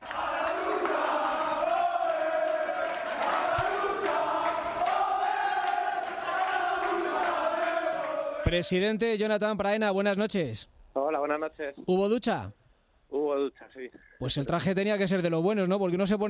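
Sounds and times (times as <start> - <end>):
locker room voices chanting and singing in celebration of a promotion: 0.0 - 8.6
sharp claps and thumps: 2.5 - 5.0
speech: 8.5 - 10.8, 11.4 - 12.6, 13.2 - 16.2.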